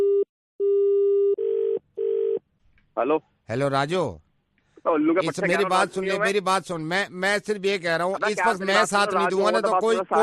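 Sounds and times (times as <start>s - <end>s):
telephone line ringing while dialing a number: 0.0s - 2.4s
speech: 3.0s - 4.2s, 4.8s - 10.2s.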